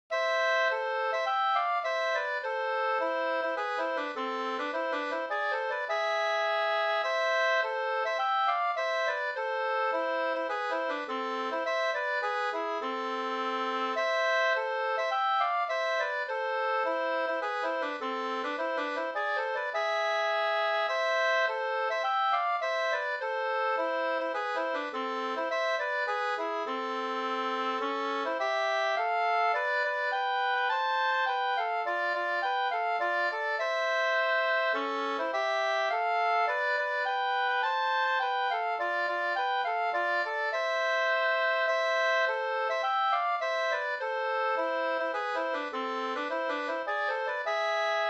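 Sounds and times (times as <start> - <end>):
polska folk dance tune: 0.0 - 48.0.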